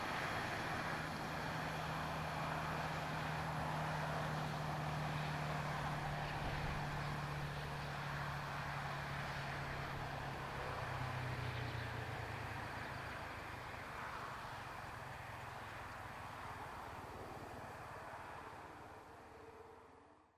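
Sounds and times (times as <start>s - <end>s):
diesel engines in North Mackay: 0.0s - 20.3s.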